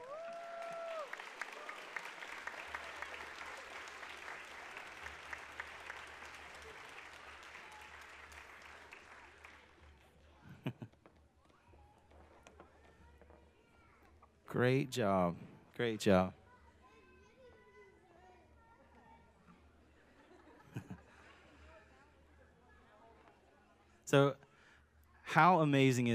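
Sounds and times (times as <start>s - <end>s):
audience applauding: 0.0s - 10.0s
laughter: 10.4s - 11.1s, 20.0s - 21.6s
speech: 14.5s - 16.4s, 24.1s - 24.4s, 25.3s - 26.1s.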